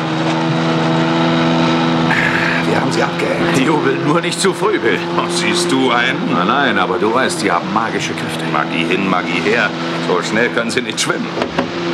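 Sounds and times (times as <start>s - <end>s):
boat engine roaring at full throttle: 0.0s - 11.9s
laughter: 2.1s - 10.6s
speech: 2.9s - 11.9s.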